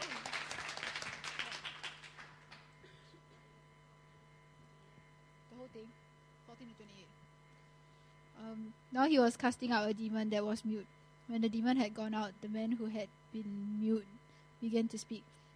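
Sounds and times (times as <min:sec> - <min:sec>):
audience applause: 0:00.0 - 0:02.7
speech: 0:05.8 - 0:07.3, 0:08.4 - 0:15.4.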